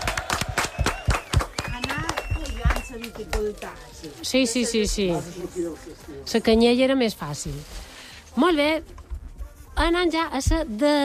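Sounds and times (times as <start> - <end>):
scattered clapping for parents at a family game show: 0.0 - 3.8
speech: 3.6 - 9.0, 9.8 - 11.0.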